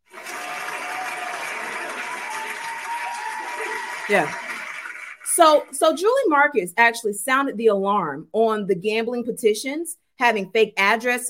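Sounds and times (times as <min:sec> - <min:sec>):
applause: 0:00.0 - 0:05.8
speech: 0:04.1 - 0:04.4, 0:05.4 - 0:11.2.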